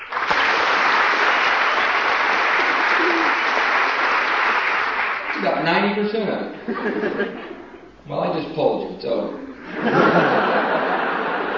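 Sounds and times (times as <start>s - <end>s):
crowd applauding: 0.0s - 5.6s
speech: 5.4s - 7.5s, 8.1s - 10.9s
laughter: 6.6s - 7.9s, 9.6s - 11.5s.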